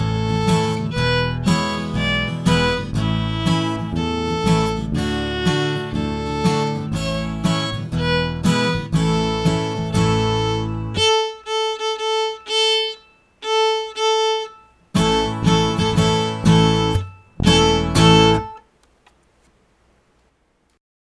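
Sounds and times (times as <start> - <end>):
bass: 0.0 - 11.5, 14.5 - 18.6
violin: 0.0 - 18.6
guitar: 0.0 - 19.1.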